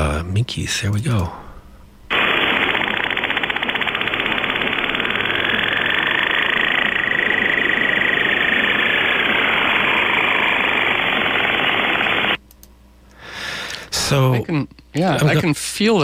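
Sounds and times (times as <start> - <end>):
speech: 0.1 - 1.4, 14.1 - 16.0
faint high whine: 1.6 - 12.4
cicada-like chirring buzz: 2.2 - 12.3.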